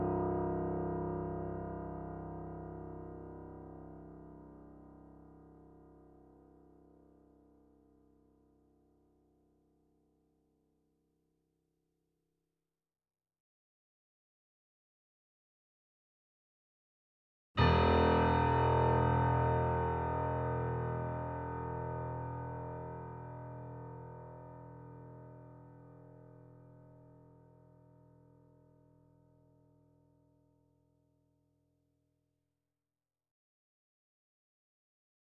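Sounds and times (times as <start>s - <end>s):
grand piano notes C1 E1 A1 with effects: 0.0s - 6.4s, 17.6s - 29.2s.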